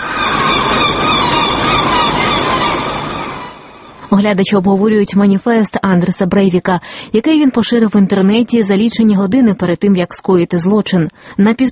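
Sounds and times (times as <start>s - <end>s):
seagulls crying in Oslo: 0.0s - 4.1s
noise: 0.0s - 11.7s
speech: 4.1s - 11.7s.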